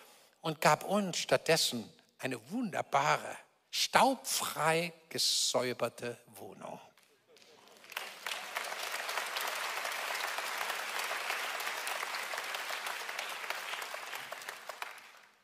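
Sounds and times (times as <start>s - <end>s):
speech: 0.4s - 6.9s
audience applauding and cheering: 7.4s - 15.4s.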